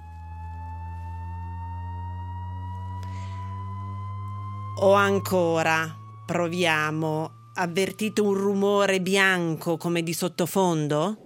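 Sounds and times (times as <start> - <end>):
high-pitched whistle: 0.0 - 11.0
speech: 4.8 - 11.2.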